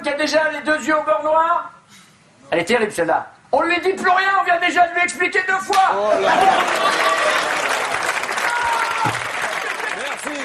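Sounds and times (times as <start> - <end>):
speech: 0.2 - 1.8, 2.5 - 7.2
audience laughing: 6.1 - 7.9, 9.4 - 10.4
audience applauding: 6.2 - 10.4.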